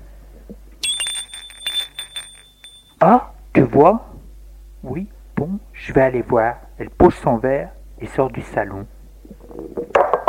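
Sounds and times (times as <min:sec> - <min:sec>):
bell ringing at the front gate: 0:00.8 - 0:03.0
speech: 0:03.0 - 0:04.1, 0:04.8 - 0:08.9.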